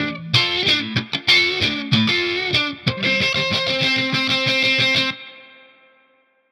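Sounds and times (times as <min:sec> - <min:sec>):
hip-hop guitar line: 0:00.0 - 0:06.2.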